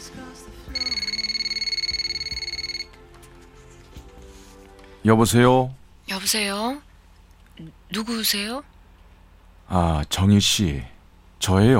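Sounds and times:
low hum: 0.0 - 11.7
telephone ringing: 0.7 - 3.0
speech: 5.0 - 6.9, 7.6 - 8.7, 9.7 - 11.7.

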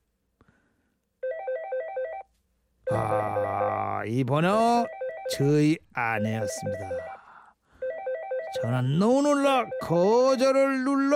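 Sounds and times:
mobile phone ringtone: 1.2 - 2.3, 4.7 - 5.6, 6.2 - 7.2, 7.8 - 10.3
speech: 4.0 - 7.2, 8.6 - 11.1.

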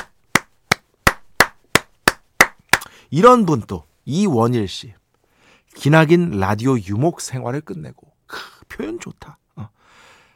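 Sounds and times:
hand clapping: 0.0 - 2.9
speech: 3.1 - 5.0, 5.8 - 9.8.

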